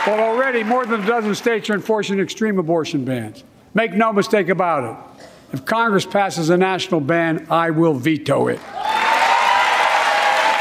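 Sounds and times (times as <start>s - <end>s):
loud applause from a large crowd during standing ovation: 0.0s - 1.7s, 8.7s - 10.5s
speech: 0.0s - 8.9s
crowd cheering and whooping: 8.7s - 10.5s.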